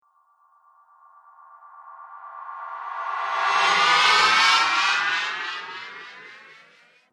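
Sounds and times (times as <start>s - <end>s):
UFO spacecraft riser zoom: 2.7s - 7.0s.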